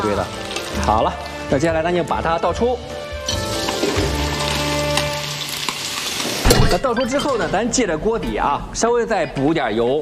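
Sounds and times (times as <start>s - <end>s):
speech: 0.0s - 3.0s, 3.8s - 4.2s, 6.5s - 10.0s
chicken frying in hot oil: 0.0s - 6.5s.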